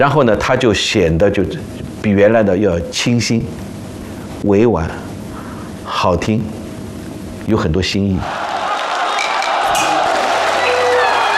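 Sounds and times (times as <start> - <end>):
speech: 0.0 - 3.7, 4.4 - 5.0, 5.9 - 6.6, 7.4 - 8.5
theatre audience cheering: 8.2 - 11.3.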